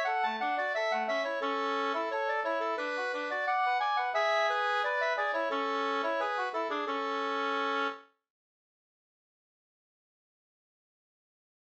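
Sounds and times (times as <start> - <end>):
folk walking tune: 0.0 - 8.0.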